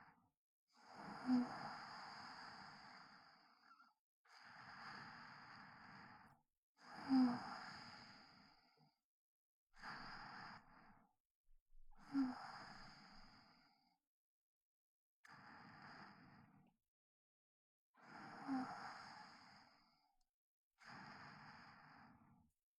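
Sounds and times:
sleep breathing recorded with binaural microphone: 0.8 - 8.8, 9.8 - 10.9, 12.0 - 13.9, 15.3 - 16.6, 18.0 - 19.8, 20.8 - 22.3.

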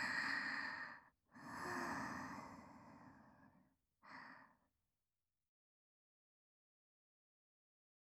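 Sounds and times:
sleeping breath: 0.0 - 4.5.

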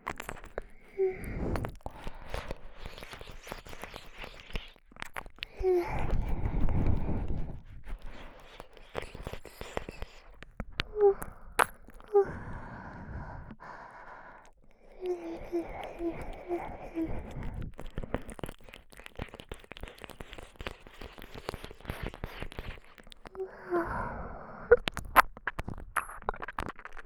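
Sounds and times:
soft tongue licking: 0.0 - 12.7, 13.4 - 24.0, 24.6 - 27.0
sucking sounds: 0.4 - 4.8, 5.4 - 18.4, 21.1 - 25.2.

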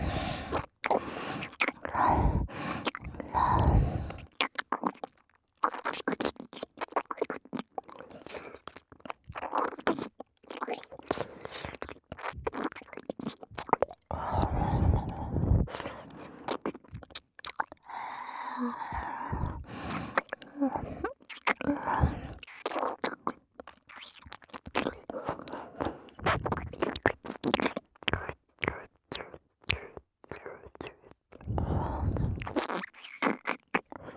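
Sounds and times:
person breathing into the right ear: 0.0 - 4.3, 14.1 - 16.5, 17.9 - 21.1, 21.7 - 22.4, 31.5 - 32.4
right ear licking: 0.0 - 34.1.

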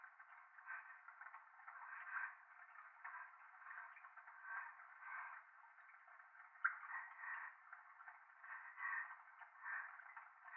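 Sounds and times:
breathing in the left ear: 0.6 - 2.4, 3.0 - 5.4, 6.9 - 10.5.

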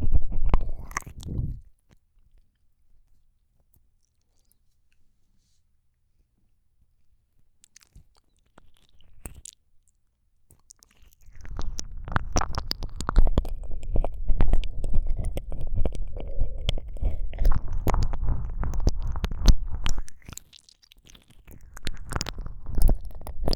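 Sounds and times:
slow sticky ear licking ASMR: 0.0 - 1.7, 10.5 - 23.5.

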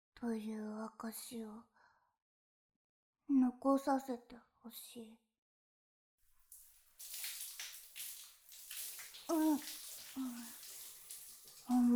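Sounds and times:
speech: 0.2 - 1.7, 3.3 - 5.2, 9.3 - 10.6, 11.7 - 11.9
water splashing and pouring while hair is washed: 6.4 - 11.9.

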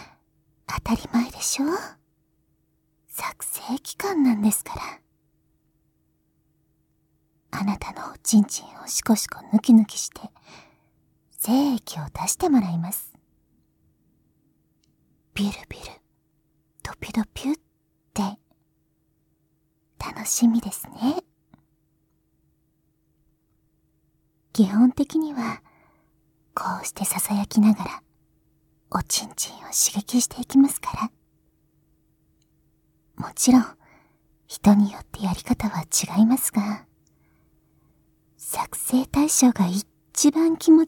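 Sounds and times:
ASMR whispering: 0.0 - 2.0, 3.1 - 5.0, 7.5 - 10.4, 11.3 - 13.2, 15.3 - 16.1, 16.8 - 18.6, 20.0 - 21.3, 24.5 - 25.7, 26.5 - 28.1, 28.9 - 31.2, 33.2 - 33.8, 34.5 - 36.9, 38.4 - 40.8.

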